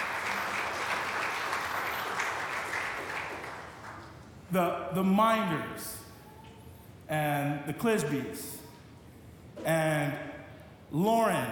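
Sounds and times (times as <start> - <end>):
audience applause: 0.0 - 4.2
speech: 4.5 - 6.0, 7.1 - 8.6, 9.6 - 10.3, 10.9 - 11.4.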